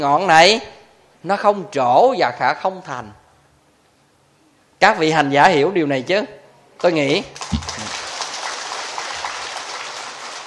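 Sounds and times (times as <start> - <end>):
speech: 0.0 - 3.2, 4.8 - 7.7
audience applause at a talk to meditation practitioners: 7.4 - 10.4.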